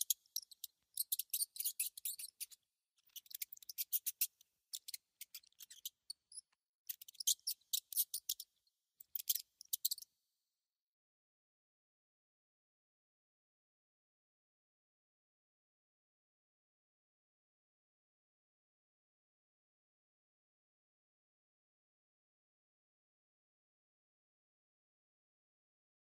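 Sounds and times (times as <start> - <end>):
mouse calls as clicking squeaks: 0.0 - 10.0.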